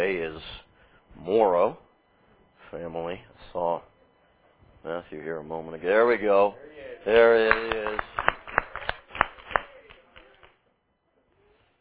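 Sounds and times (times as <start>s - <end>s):
speech: 1.2s - 1.8s, 2.7s - 3.9s, 4.8s - 8.2s
audience clapping: 7.2s - 10.6s.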